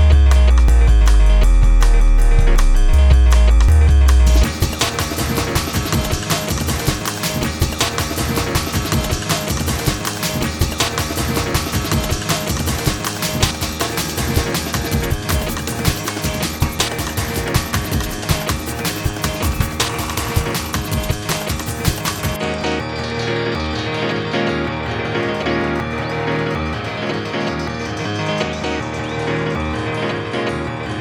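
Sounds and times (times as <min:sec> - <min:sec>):
rave piano music: 0:00.0 - 0:31.0.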